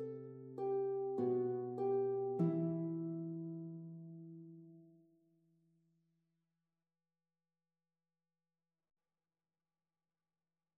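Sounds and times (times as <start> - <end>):
harp arrangement: 0.0 - 4.7.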